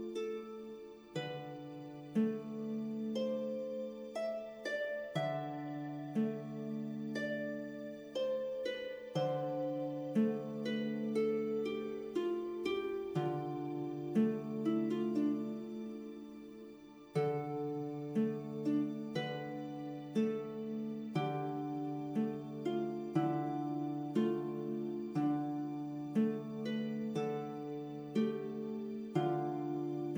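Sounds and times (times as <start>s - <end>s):
light ambient fantasy RPG music: 0.0s - 30.1s.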